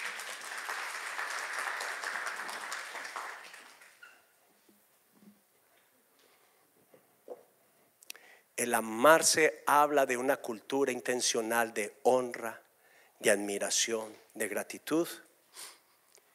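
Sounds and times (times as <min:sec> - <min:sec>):
audience applause: 0:00.0 - 0:04.1
speech: 0:08.6 - 0:12.6, 0:13.2 - 0:15.7.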